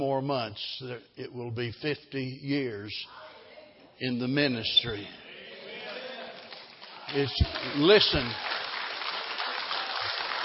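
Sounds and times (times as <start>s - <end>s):
speech: 0.0s - 3.3s, 4.0s - 5.2s, 7.1s - 8.6s
audience clapping: 5.8s - 10.4s.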